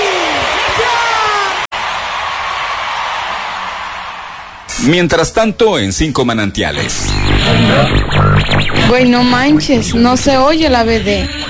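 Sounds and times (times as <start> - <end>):
audience applause: 0.0 - 4.7
speech: 4.8 - 11.4.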